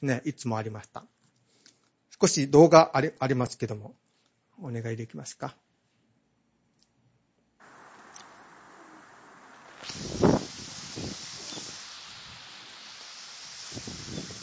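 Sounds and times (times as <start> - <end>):
speech: 0.0 - 1.2, 2.2 - 4.0, 4.6 - 5.6
storm surge waves surging up a river: 7.6 - 14.4.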